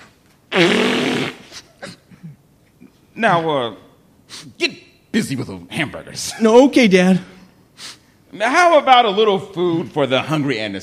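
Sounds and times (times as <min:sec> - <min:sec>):
nose blowing: 0:00.0 - 0:02.1, 0:04.3 - 0:04.6, 0:07.8 - 0:08.2
sniffing: 0:00.5 - 0:02.2, 0:04.3 - 0:04.6, 0:07.8 - 0:08.1
speech: 0:03.2 - 0:07.3, 0:08.3 - 0:10.8.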